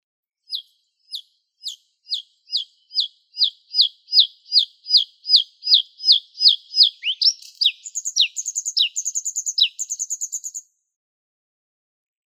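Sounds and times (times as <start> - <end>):
bluethroat singing: 2.1 - 10.6.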